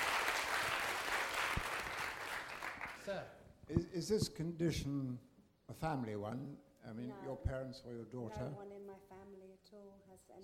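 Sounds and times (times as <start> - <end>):
audience applauding: 0.0 - 3.1
speech: 3.1 - 10.4.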